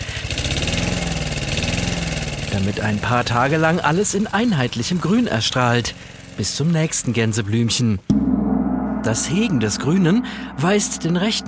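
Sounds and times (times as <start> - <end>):
lawn mower engine running: 0.0 - 7.0
speech: 2.6 - 8.1, 9.0 - 11.4.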